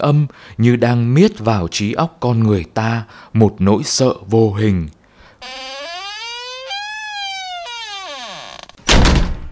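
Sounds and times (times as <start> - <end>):
speech: 0.0 - 5.7
wooden door hinge creaking: 5.4 - 9.2.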